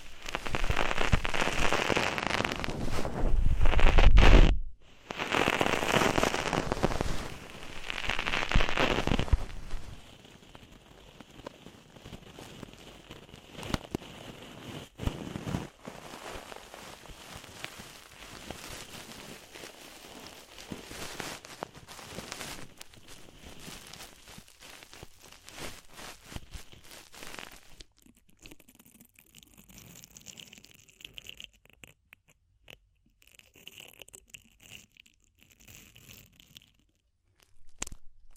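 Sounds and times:
deep ear cleaning sounds: 0.0s - 10.0s, 18.3s - 28.6s.

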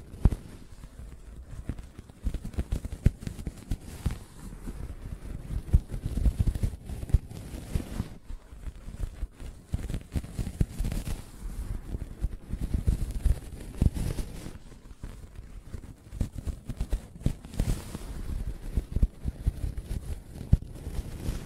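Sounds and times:
soft fabric surface being tapped and scratched: 0.0s - 21.4s.

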